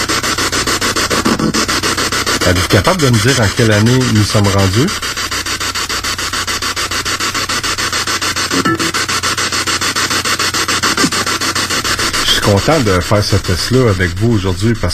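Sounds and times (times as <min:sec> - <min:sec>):
ghost box radio sweep static: 0:00.0 - 0:05.8, 0:06.4 - 0:14.9
speech: 0:02.5 - 0:05.4, 0:12.5 - 0:14.9.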